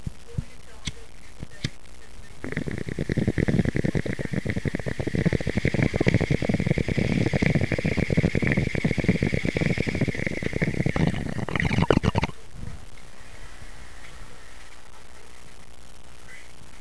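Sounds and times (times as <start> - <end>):
bubble: 2.4 - 12.4.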